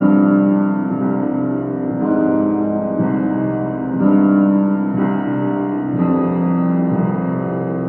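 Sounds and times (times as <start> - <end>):
sad piano loop: 0.0 - 7.8.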